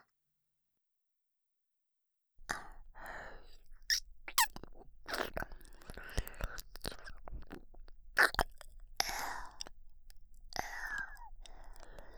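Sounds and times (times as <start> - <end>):
ear licking: 2.4 - 12.1.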